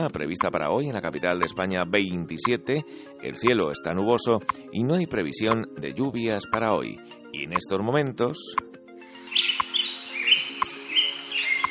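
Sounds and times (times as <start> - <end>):
speech: 0.0 - 8.8
birdsong played by Radio Hora to mark sunrise in Madrid: 9.2 - 11.6.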